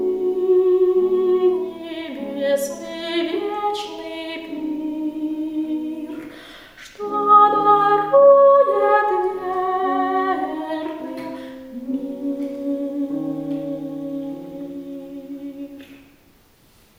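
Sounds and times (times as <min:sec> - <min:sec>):
soprano singing: 0:00.0 - 0:16.1.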